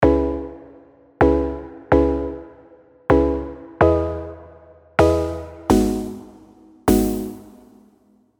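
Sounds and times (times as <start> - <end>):
Serum synth keys: 0.0 - 8.0.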